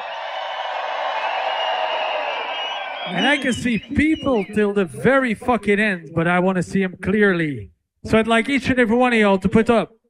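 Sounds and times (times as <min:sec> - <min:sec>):
concert crowd cheering: 0:00.0 - 0:04.7
speech: 0:03.1 - 0:10.0.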